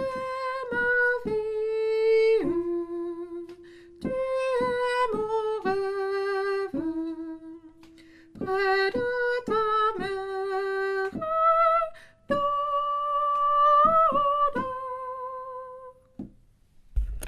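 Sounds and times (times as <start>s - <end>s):
soprano singing a Basque lullaby: 0.0s - 16.0s.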